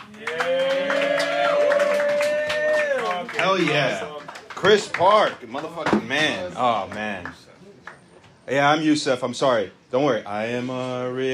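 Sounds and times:
audience applauding and cheering: 0.0 - 5.3
speech: 3.6 - 7.5, 8.5 - 11.3.

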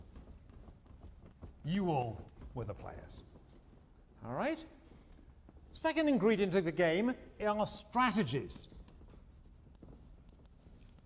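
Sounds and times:
lecturer writing on the board: 0.0 - 4.0, 8.0 - 11.0
speech: 1.6 - 3.3, 4.2 - 4.8, 5.8 - 8.8.

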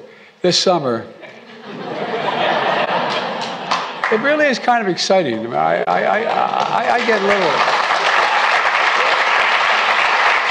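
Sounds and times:
speech: 0.4 - 1.9, 4.1 - 7.7
laughter: 1.2 - 4.3
audience applause: 2.1 - 4.4, 6.2 - 10.4.

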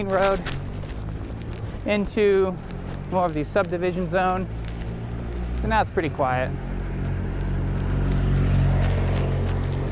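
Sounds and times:
speech: 0.0 - 0.6, 1.8 - 4.6, 5.6 - 7.1
motorcycle passing by: 4.2 - 9.8.

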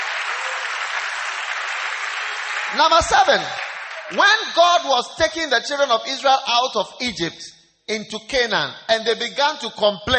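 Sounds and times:
audience clapping: 0.0 - 4.6
speech: 2.7 - 10.1.

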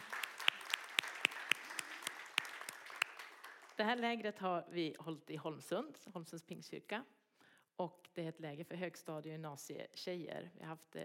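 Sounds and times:
small group applauding: 0.0 - 4.0
speech: 3.8 - 7.2, 7.8 - 11.0.

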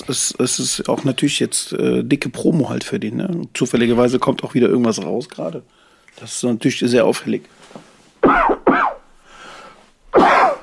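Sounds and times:
speech: 0.1 - 8.4
person coughing after choking: 8.2 - 9.1, 10.2 - 10.6
raspy breath: 9.1 - 9.9.

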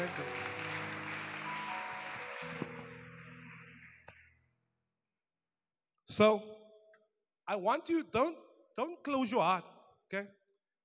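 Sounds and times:
audience clapping: 0.0 - 4.4
speech: 6.1 - 6.5, 7.5 - 10.4.

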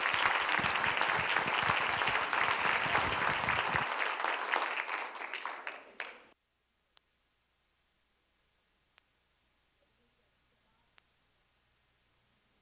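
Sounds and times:
audience applause for a keynote speaker at an environmental health event: 0.0 - 6.4.

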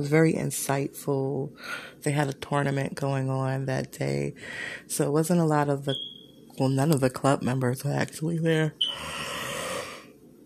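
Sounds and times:
speech: 0.0 - 9.4
person yawning: 8.8 - 10.0.

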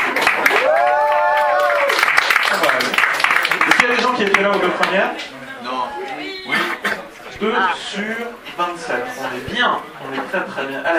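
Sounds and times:
audience applause: 0.0 - 5.1
speech: 4.2 - 5.4, 7.4 - 10.9.

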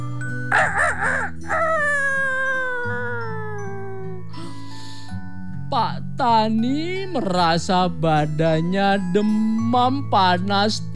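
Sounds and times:
rooster crowing: 0.5 - 4.0
speech: 6.2 - 10.9.

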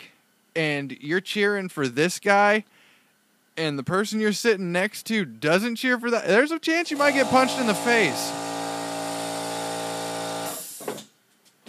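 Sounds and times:
speech: 0.6 - 2.8, 3.6 - 8.5
air compressor running: 6.8 - 11.1.

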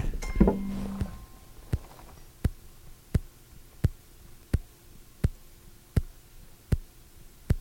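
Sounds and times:
microphone rustling handling noise: 0.0 - 2.2
titanium mechanical heart valve ticking through microphone: 0.0 - 6.9.

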